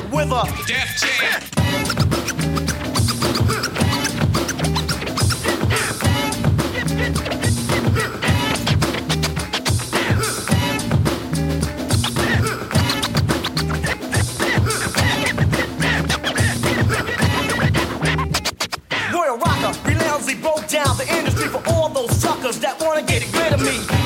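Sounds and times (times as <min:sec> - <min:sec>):
DJ record scratching: 0:00.0 - 0:24.0
speech: 0:00.1 - 0:02.4
steady beat: 0:01.5 - 0:18.8, 0:19.5 - 0:24.0.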